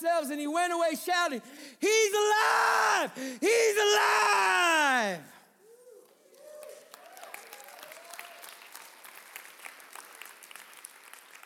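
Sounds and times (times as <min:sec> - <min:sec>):
speech: 0:00.0 - 0:05.4
crowd applause: 0:06.0 - 0:11.4.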